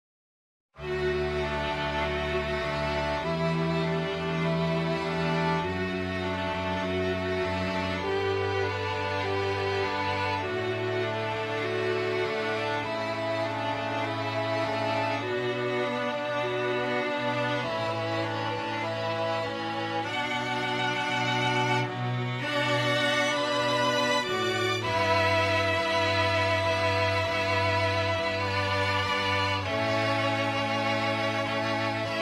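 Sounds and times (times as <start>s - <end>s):
string quartet: 0.8s - 32.2s.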